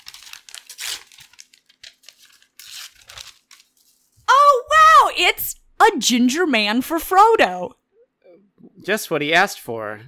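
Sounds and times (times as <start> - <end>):
wrapping paper tearing as a gift package is opened by a Christmas tree: 0.0 - 4.3
speech: 5.2 - 7.8, 8.8 - 10.0.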